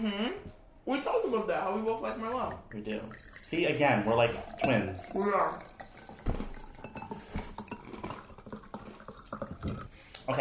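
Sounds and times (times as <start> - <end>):
speech: 0.0 - 6.4
faint steady hiss: 0.0 - 10.3
wine glasses set down on a hard surface: 2.4 - 9.9.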